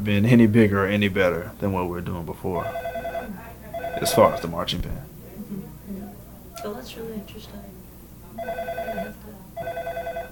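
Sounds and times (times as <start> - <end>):
speech: 0.0 - 2.9, 4.0 - 5.1, 6.6 - 7.8, 8.4 - 9.8
low hum: 0.0 - 10.3
telephone bell ringing: 2.6 - 4.5, 8.4 - 10.3.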